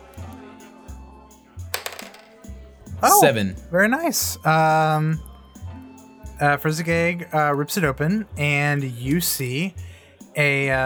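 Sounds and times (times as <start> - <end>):
twelve-sided die rattling: 1.8 - 2.4
speech: 3.0 - 5.3, 6.4 - 10.8.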